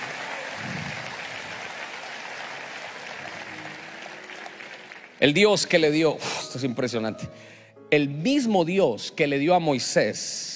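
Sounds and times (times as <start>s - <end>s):
audience applause: 0.0s - 5.9s
speech: 5.2s - 10.5s.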